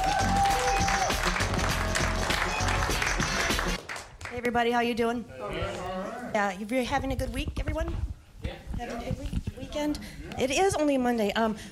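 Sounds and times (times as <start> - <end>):
audience applause: 0.0 - 4.2
speech: 4.5 - 11.7.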